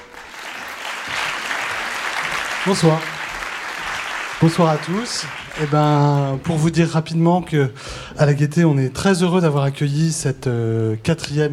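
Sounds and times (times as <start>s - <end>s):
audience applause: 0.0s - 6.8s
speech: 2.6s - 3.2s, 4.4s - 11.5s.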